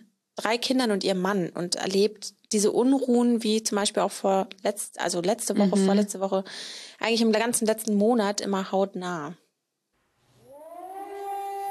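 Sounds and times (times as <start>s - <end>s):
speech: 0.4s - 9.4s
air raid siren north of Tel Aviv: 10.4s - 11.7s.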